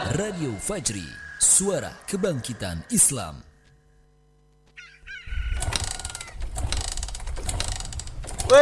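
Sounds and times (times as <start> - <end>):
speech: 0.2 - 3.5
motorcycle being started and warmed up: 5.3 - 8.5.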